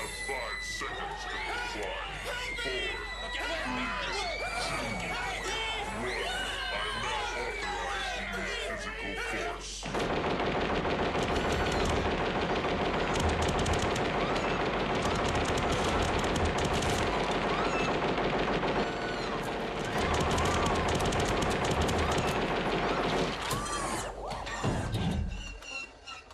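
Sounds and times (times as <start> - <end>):
panicked shouting and screams from a film boardroom scene: 0.0 - 9.9, 11.4 - 25.9
ED-209 robot machine-gun fire: 9.8 - 23.8.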